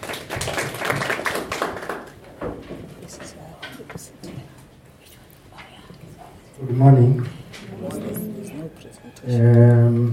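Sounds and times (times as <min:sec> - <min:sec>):
audience clapping: 0:00.0 - 0:02.4
voices murmuring: 0:06.3 - 0:10.1
speech: 0:06.8 - 0:07.4.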